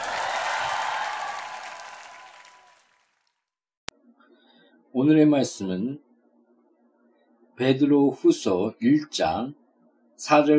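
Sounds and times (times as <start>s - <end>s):
audience applause: 0.0s - 3.2s
speech: 5.0s - 6.1s, 7.6s - 9.6s, 10.2s - 10.5s.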